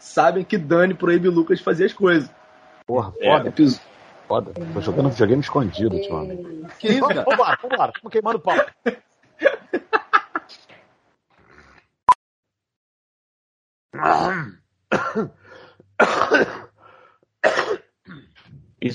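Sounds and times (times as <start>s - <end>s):
speech: 0.1s - 9.5s, 14.0s - 15.4s
laughter: 4.8s - 10.6s
throat clearing hacks: 14.0s - 15.4s, 16.0s - 16.7s, 17.4s - 18.4s
phlegmy smoker's cough: 14.9s - 15.4s, 16.0s - 16.7s, 17.4s - 18.4s.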